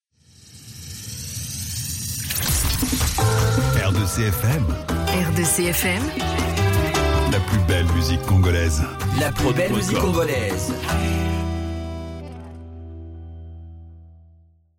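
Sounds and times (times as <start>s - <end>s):
Congolese music with a sweep: 3.2s - 13.1s.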